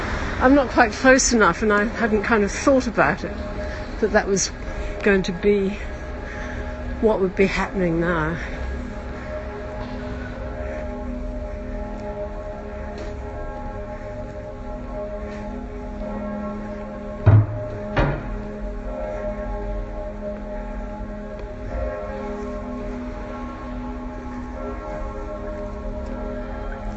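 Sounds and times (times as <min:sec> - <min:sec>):
Münster church bells ringing at midday in the old town: 0:00.0 - 0:26.9
speech: 0:00.4 - 0:05.9, 0:07.0 - 0:08.6
sharp knocks: 0:17.2 - 0:18.4.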